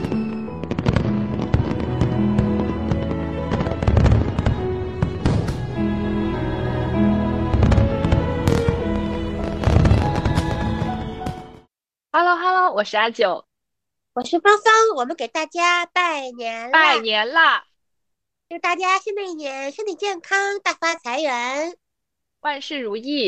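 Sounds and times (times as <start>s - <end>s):
fireworks exploding: 0.0s - 11.6s
speech: 12.3s - 13.5s, 14.2s - 17.7s, 18.5s - 21.8s, 22.4s - 23.2s.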